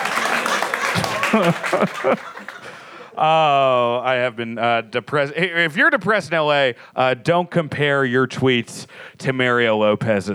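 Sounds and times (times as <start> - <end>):
applause: 0.0 - 2.8
laughter: 0.0 - 3.9
speech: 1.0 - 2.5, 3.2 - 10.3.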